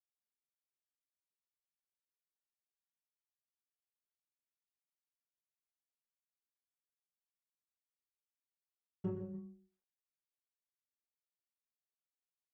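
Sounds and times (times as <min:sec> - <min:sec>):
cello: 0:09.0 - 0:09.8.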